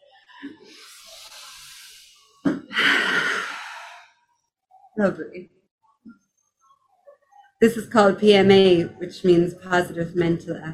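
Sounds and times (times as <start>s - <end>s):
person taking a deep breath in and exhaling before reciting a poem: 0.6s - 4.2s
speech: 5.0s - 6.2s, 7.6s - 10.7s.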